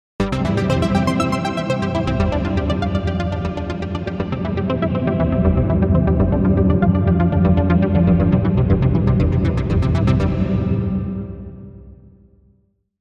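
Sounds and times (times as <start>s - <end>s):
synthesizer: 0.2s - 12.2s.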